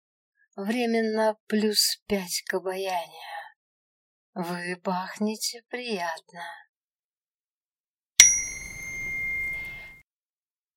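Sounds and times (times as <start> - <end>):
speech: 0.6 - 3.4, 4.4 - 6.6
system notification chime: 8.2 - 10.0.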